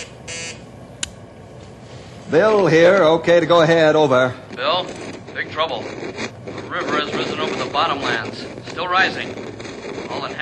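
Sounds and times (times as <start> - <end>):
emergency signal buzzer on state radio: 0.0 - 0.7
low hum: 0.0 - 10.4
speech: 2.3 - 9.5.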